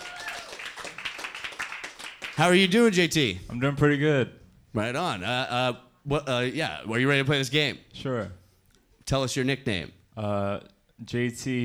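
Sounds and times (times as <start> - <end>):
audience clapping: 0.0 - 2.8
speech: 2.4 - 8.4, 9.1 - 11.6.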